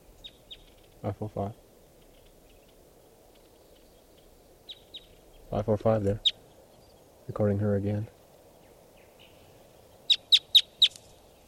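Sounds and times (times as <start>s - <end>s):
wild bird calling: 0.0s - 1.2s, 2.0s - 7.1s, 8.6s - 11.4s
speech: 1.0s - 1.6s, 5.5s - 6.3s, 7.3s - 8.2s.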